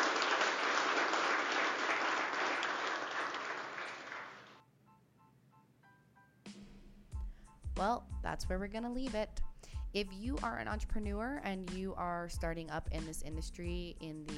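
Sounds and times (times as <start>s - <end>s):
audience applause: 0.0s - 4.6s
speech: 7.8s - 14.3s.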